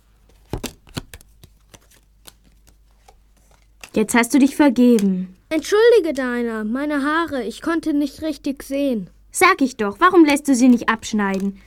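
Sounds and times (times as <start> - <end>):
playing cards being dealt for a card game: 0.2 - 4.0
speech: 3.9 - 11.6.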